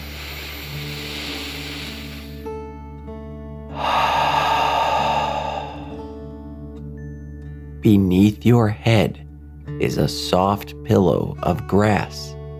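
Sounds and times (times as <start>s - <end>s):
deep breath in and out: 0.0s - 2.6s, 3.7s - 6.5s
soft musical drone: 0.0s - 8.7s
speech: 7.8s - 12.4s.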